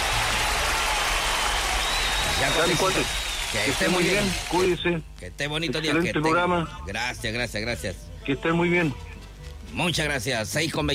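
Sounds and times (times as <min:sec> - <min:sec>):
applause as a tribute to an honoured man: 0:00.0 - 0:04.8
speech: 0:02.4 - 0:09.1, 0:09.7 - 0:10.9.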